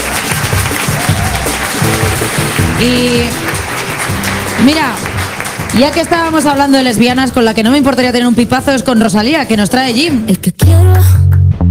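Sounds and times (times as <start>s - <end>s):
audience applause on a television comedy show: 0.0s - 7.3s
speech: 2.8s - 3.5s, 4.6s - 5.1s, 5.7s - 11.2s.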